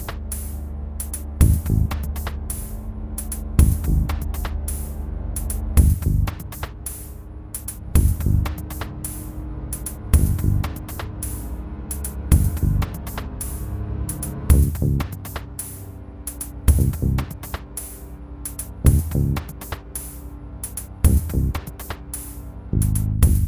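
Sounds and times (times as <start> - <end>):
noisy loop: 0.0 - 23.4.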